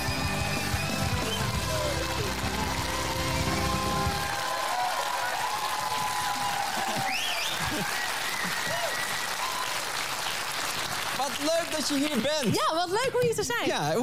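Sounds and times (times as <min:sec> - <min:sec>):
cheers and whoops: 0:00.0 - 0:10.1
live audience applause: 0:00.0 - 0:12.5
speech: 0:11.4 - 0:14.0.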